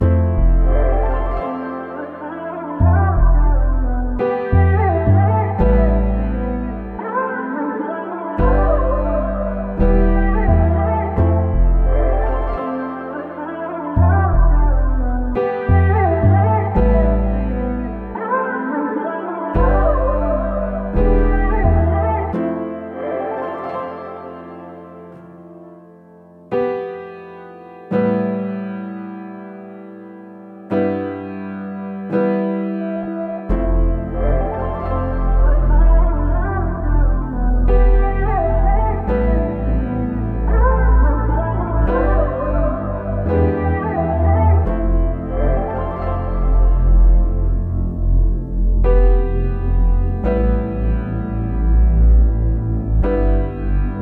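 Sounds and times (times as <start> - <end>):
melodies in A minor: 0.0 - 54.0.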